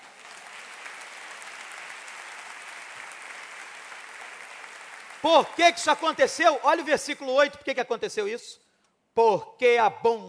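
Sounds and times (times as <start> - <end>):
audience applause: 0.0 - 6.4
speech: 5.2 - 8.6, 9.2 - 10.2.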